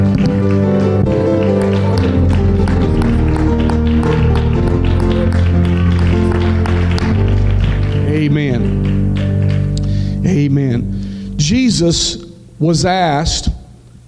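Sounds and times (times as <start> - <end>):
audience clapping hands: 0.0 - 10.4
speech: 11.8 - 14.0.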